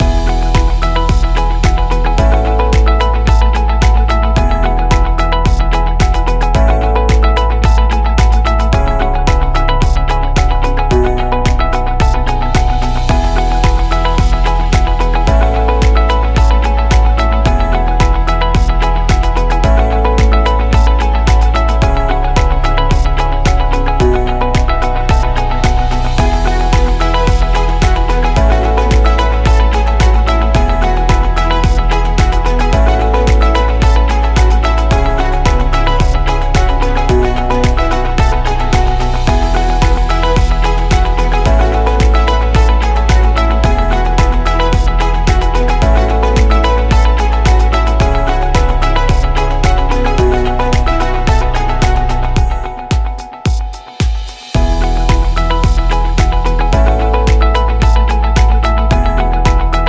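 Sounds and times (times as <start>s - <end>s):
education music loop: 0.0s - 59.8s.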